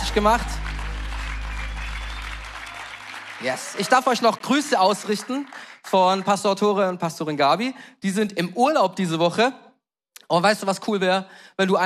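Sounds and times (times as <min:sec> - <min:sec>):
low hum: 0:00.0 - 0:03.2
audience applause for the band: 0:00.0 - 0:06.5
speech: 0:00.2 - 0:00.6, 0:03.4 - 0:09.6, 0:10.3 - 0:11.8.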